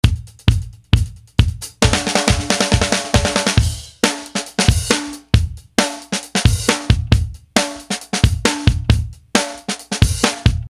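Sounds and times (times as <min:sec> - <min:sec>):
drum: 0:00.0 - 0:10.6.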